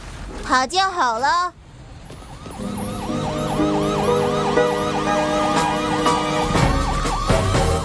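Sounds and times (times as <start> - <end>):
speech: 0.5 - 1.6
loud siren wailing from a tower: 2.1 - 7.8.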